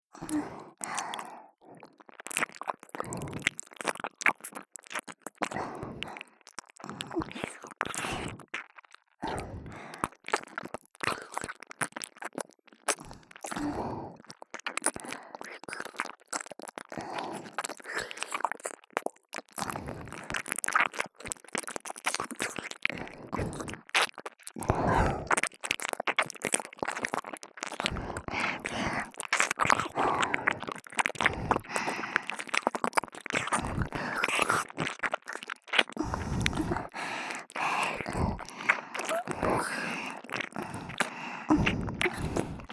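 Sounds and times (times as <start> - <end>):
licking both ears: 0.2 - 42.7.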